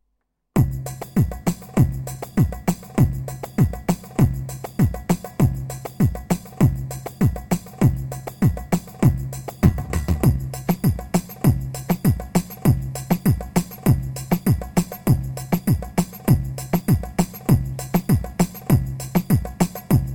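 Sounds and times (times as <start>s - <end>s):
PA-500 keyboard rhythm 2-4: 0.6s - 20.1s.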